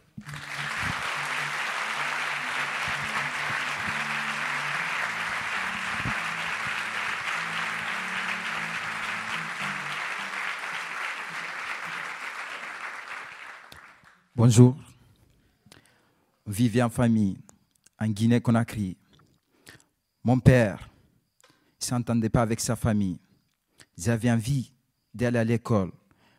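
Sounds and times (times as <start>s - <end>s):
audience applause: 0.0s - 14.2s
speech: 14.4s - 14.8s, 16.6s - 17.4s, 18.0s - 19.0s, 20.2s - 20.9s, 21.8s - 23.2s, 24.0s - 26.0s.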